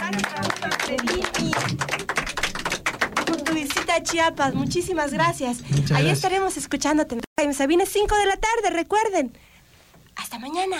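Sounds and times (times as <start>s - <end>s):
applause from children: 0.0s - 4.2s
speech: 0.1s - 2.3s, 3.6s - 9.5s, 10.3s - 10.7s.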